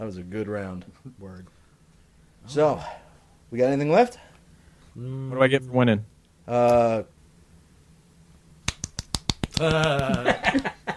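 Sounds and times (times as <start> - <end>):
speech: 0.0 - 1.6, 2.4 - 4.3, 5.0 - 7.2, 9.6 - 10.8
golf clap, light quiet clapping: 8.7 - 10.7
laughter: 9.6 - 10.9.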